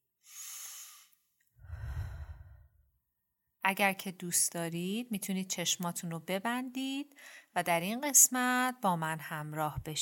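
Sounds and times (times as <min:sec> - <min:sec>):
deep breaths taken seated upright with a straight back: 0:00.3 - 0:02.9
speech: 0:03.6 - 0:10.0.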